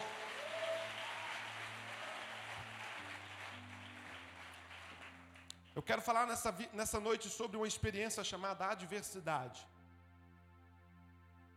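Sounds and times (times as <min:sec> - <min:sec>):
audience applause: 0:00.0 - 0:05.7
speech: 0:05.8 - 0:09.7.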